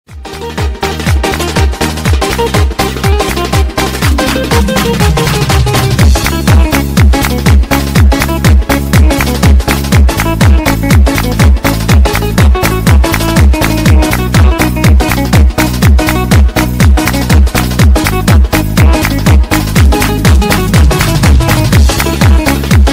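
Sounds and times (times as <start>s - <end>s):
Chechen lezginka bass: 0.1s - 22.9s.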